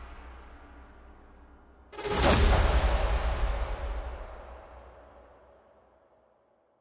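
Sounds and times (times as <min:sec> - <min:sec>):
transition sound: 0:02.0 - 0:04.9.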